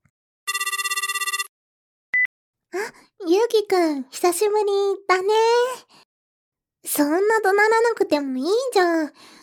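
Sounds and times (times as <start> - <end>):
telephone ringing with an electronic trill: 0.5 - 1.6
speech: 3.5 - 6.0, 6.8 - 9.4.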